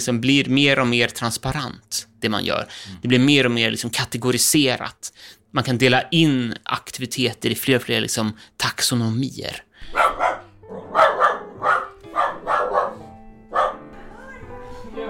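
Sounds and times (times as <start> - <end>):
speech: 0.0 - 10.0
dog barking: 9.8 - 13.9.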